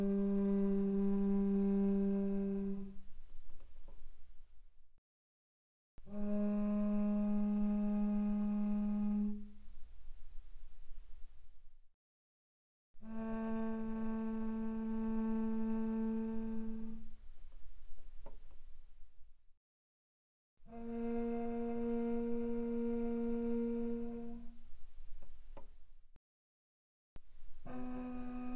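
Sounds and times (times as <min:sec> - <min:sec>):
bowed cello pianissimo on the C string: 0:00.0 - 0:04.1, 0:06.0 - 0:11.3, 0:13.0 - 0:18.5, 0:20.7 - 0:25.7, 0:27.2 - 0:28.5.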